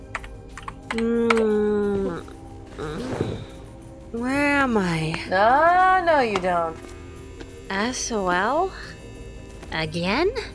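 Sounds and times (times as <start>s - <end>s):
computer keyboard keys tapped while entering a password: 0.0s - 1.7s
speech: 0.9s - 1.6s, 4.1s - 6.9s, 7.7s - 8.9s, 9.7s - 10.5s.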